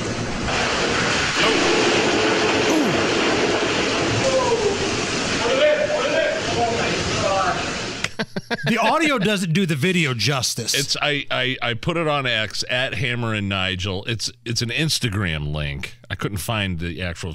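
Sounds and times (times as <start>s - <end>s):
beer blasting out of a pressurized tank: 0.0s - 8.0s
laughter: 8.0s - 9.8s
speech: 8.2s - 17.3s.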